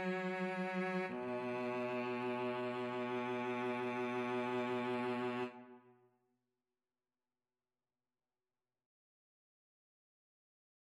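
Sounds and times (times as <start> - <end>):
violin: 0.0 - 5.9
cello: 0.0 - 6.0.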